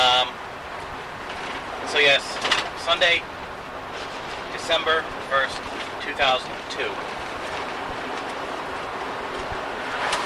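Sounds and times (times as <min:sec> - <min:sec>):
road noise inside a moving Jeep: 0:00.0 - 0:10.2
speech: 0:01.9 - 0:03.4, 0:04.6 - 0:07.2.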